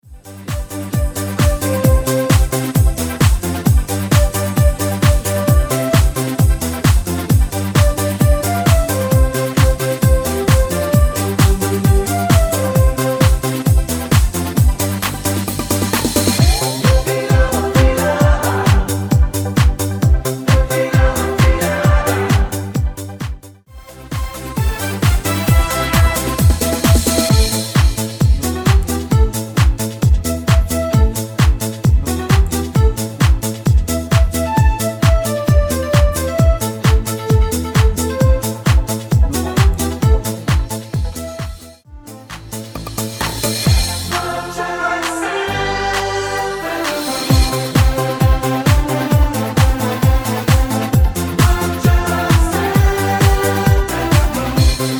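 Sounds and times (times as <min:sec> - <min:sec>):
group dance music medley: 0:00.0 - 0:54.9.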